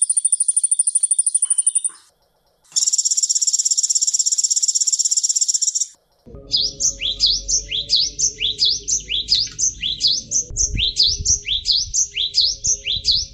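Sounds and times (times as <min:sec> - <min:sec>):
sunbird song: 0:00.0 - 0:13.3
low rumble: 0:06.0 - 0:13.3.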